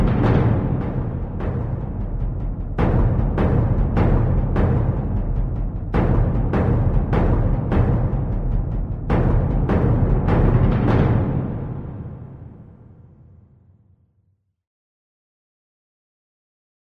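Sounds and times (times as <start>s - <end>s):
tabl drum: 0.0s - 12.3s.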